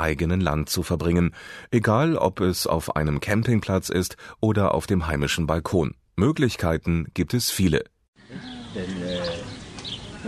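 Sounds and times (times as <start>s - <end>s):
speech: 0.0s - 9.4s
birds chirping: 8.2s - 10.2s.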